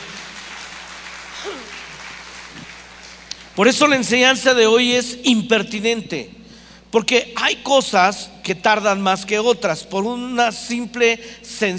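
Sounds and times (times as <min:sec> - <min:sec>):
audience applause: 0:00.0 - 0:03.3
speech: 0:03.6 - 0:11.7.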